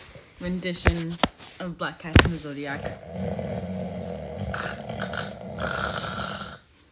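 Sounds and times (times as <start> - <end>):
speech: 0.4 - 3.8
voice imitating loud snoring: 2.6 - 6.7.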